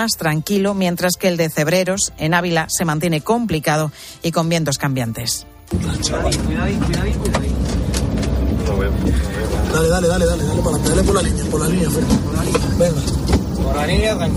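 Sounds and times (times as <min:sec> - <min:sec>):
speech: 0:00.0 - 0:07.4, 0:08.9 - 0:14.3
firefighting crew car engine rumble: 0:05.7 - 0:14.3
road noise: 0:05.7 - 0:14.3.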